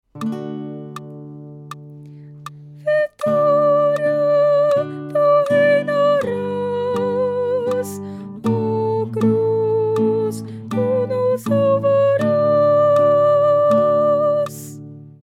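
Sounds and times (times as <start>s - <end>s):
soprano singing: 2.8s - 14.9s.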